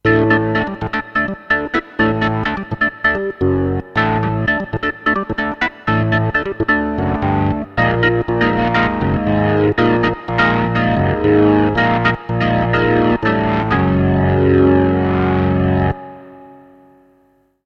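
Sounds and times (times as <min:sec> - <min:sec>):
Hammond SK1 organ: 0:00.0 - 0:17.2.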